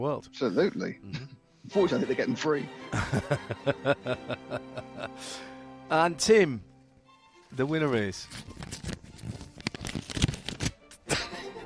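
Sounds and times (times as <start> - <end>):
speech: 0.0 - 6.7, 7.5 - 8.6
laughter: 1.1 - 5.5, 11.1 - 11.6
envelope torn open by hand: 8.2 - 11.0.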